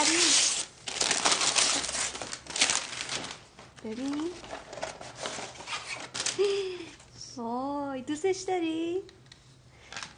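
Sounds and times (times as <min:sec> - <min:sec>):
paper crinkling as a gift package is unwrapped: 0:00.0 - 0:06.6
speech: 0:03.8 - 0:04.7, 0:07.4 - 0:09.2.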